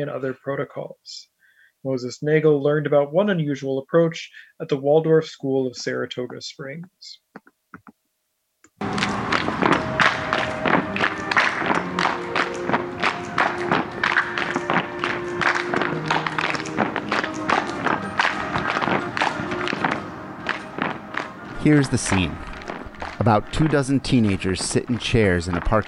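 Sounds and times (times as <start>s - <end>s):
speech: 0.0s - 7.5s, 21.6s - 22.4s, 23.2s - 25.8s
group slapping thighs and chest: 7.3s - 8.0s, 8.8s - 25.8s
group clapping in unison: 8.8s - 25.8s
group stomping in unison: 8.8s - 25.8s.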